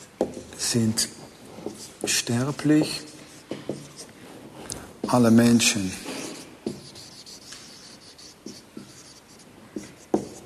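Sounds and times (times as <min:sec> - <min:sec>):
speech: 0:00.7 - 0:01.2, 0:02.0 - 0:03.1, 0:05.1 - 0:06.0
pen handwriting on paper: 0:01.5 - 0:04.1, 0:05.0 - 0:10.4.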